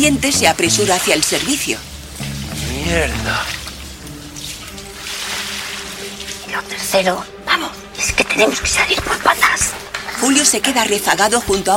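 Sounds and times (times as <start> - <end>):
speech: 0.0 - 1.9, 2.8 - 3.6, 6.5 - 11.7
lots of water gushing out of a shop bathroom: 0.0 - 7.2.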